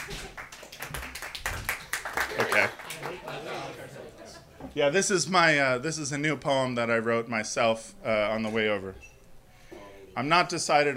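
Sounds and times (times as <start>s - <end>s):
audience applause: 0.0s - 3.9s
speech: 4.8s - 9.1s, 10.2s - 10.9s.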